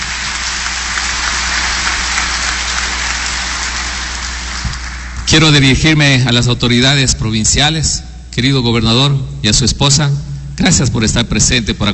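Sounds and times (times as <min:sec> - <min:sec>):
audience applause: 0:00.0 - 0:05.3
speech: 0:05.3 - 0:11.9.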